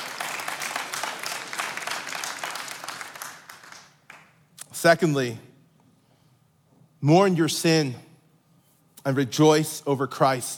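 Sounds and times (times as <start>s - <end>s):
crowd applauding: 0.0s - 4.4s
speech: 4.8s - 5.5s, 7.0s - 8.1s, 9.0s - 10.5s.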